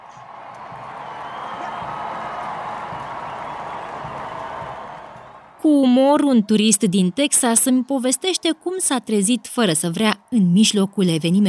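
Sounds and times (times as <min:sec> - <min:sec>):
spectators cheering and applauding King Charles and Queen Camilla's coronation carriage: 0:00.0 - 0:05.6
speech: 0:05.6 - 0:11.4.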